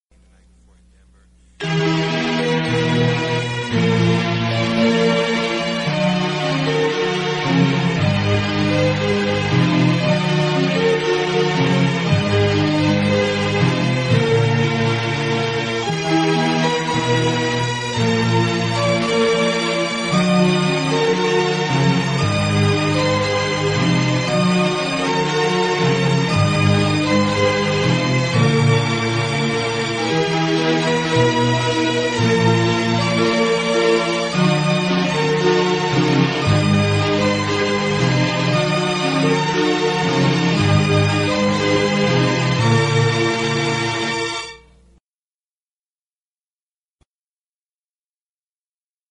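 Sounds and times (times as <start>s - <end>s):
instrumental music: 0.1s - 45.0s.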